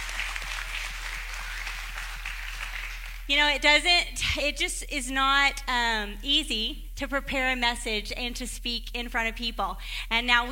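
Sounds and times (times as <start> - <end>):
church congregation applauding: 0.0 - 3.3
speech: 3.3 - 10.5.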